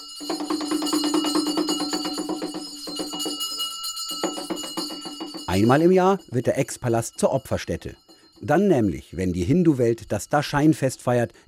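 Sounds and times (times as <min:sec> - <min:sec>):
rapid ritual hand-drum beats: 0:00.0 - 0:05.9
shrill clanging ritual bells: 0:00.0 - 0:10.9
speech: 0:05.5 - 0:11.4.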